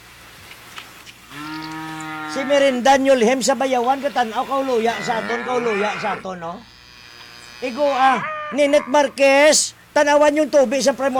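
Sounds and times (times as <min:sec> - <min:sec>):
cow mooing: 0:01.2 - 0:09.6
speech: 0:02.3 - 0:06.7, 0:07.6 - 0:11.1.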